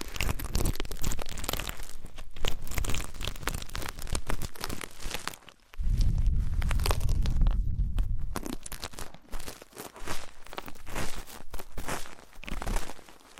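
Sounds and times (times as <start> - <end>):
ear cleaning crackling and rustling: 0.0 - 13.3
low rumbling rub: 5.8 - 8.5.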